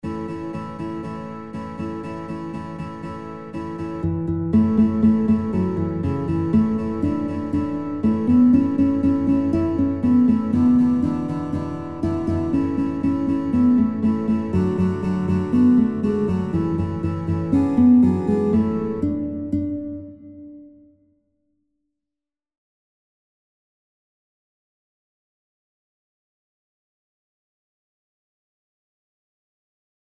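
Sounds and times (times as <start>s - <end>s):
guitar: 0.0s - 21.4s.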